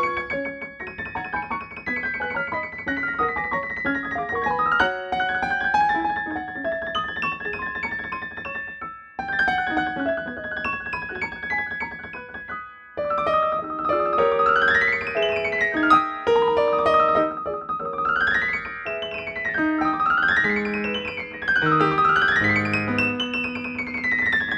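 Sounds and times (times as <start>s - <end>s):
Steinway D concert grand piano: 0.0s - 24.5s.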